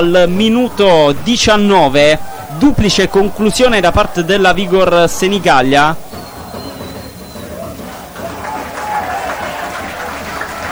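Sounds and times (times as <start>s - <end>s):
speech: 0.0s - 6.1s
laughter: 0.0s - 10.7s
applause: 3.4s - 10.7s.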